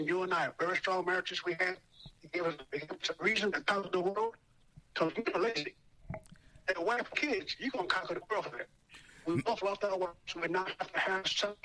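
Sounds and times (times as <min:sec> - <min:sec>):
speech: 0:00.0 - 0:04.4, 0:05.0 - 0:11.6
phone call voice breaking up: 0:09.2 - 0:09.6.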